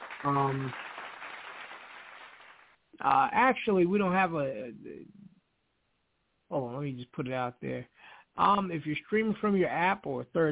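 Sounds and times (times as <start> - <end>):
crowd applause sound effect: 0.0 - 2.8
brief voiced sound: 0.2 - 0.7
speech: 0.2 - 0.9, 3.0 - 5.2, 6.5 - 10.4.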